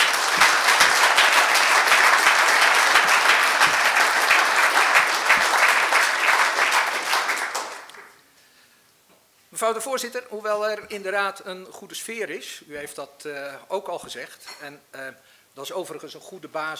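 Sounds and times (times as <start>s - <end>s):
audience applause: 0.0s - 8.2s
speech: 9.7s - 16.7s.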